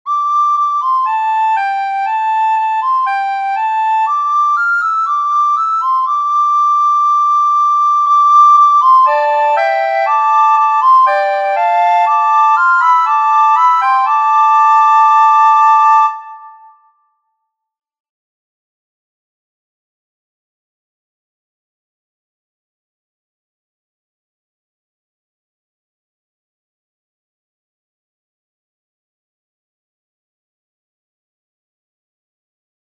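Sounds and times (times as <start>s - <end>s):
pentatonic melody: 0.3s - 16.9s.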